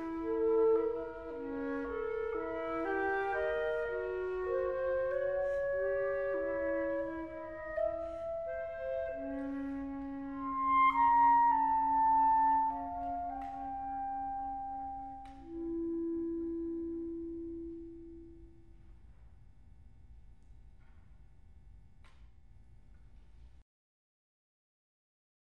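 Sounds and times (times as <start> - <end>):
flute and clarinet duet andante sostenuto: 0.0 - 18.6.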